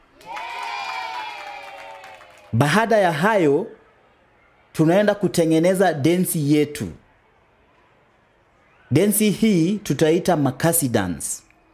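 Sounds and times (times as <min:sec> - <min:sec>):
group clapping for themselves during a dance lesson: 0:00.1 - 0:02.6
voices cheering: 0:00.2 - 0:02.7
speech: 0:02.5 - 0:03.8, 0:04.8 - 0:07.0, 0:08.9 - 0:11.4.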